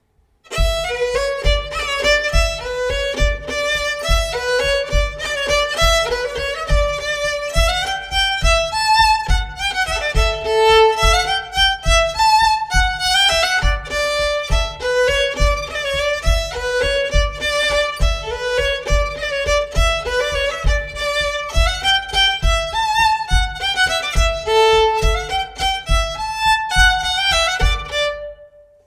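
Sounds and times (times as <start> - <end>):
instrumental air: 0.0 - 28.8.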